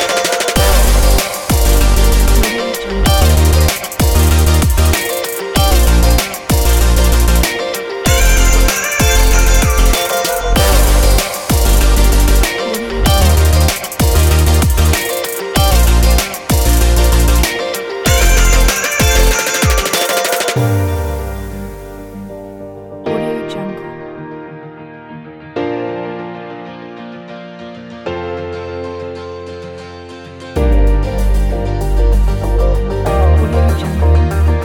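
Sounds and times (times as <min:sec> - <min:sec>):
future bass music: 0:00.0 - 0:22.6, 0:30.6 - 0:34.6.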